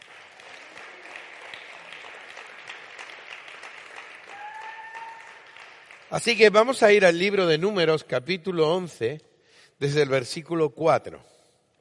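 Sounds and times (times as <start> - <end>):
audience applause: 0.0 - 6.6
speech: 6.1 - 11.3.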